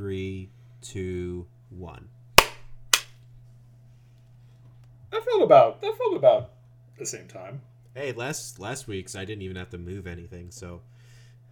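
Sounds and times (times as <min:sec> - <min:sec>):
speech: 0:00.1 - 0:02.2, 0:05.2 - 0:10.9
single hand clap for sync: 0:02.4 - 0:03.2.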